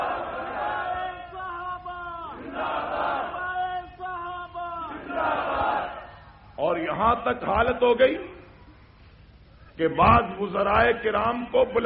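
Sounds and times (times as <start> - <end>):
large crowd at a religious rally chanting: 0.0 - 1.3, 2.2 - 3.8, 4.8 - 6.1
speech: 6.8 - 8.4, 9.8 - 11.8.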